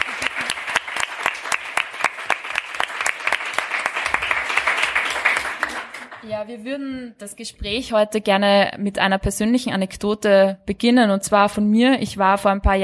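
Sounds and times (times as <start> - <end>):
audience applause: 0.0 - 6.3
speech: 6.3 - 12.8.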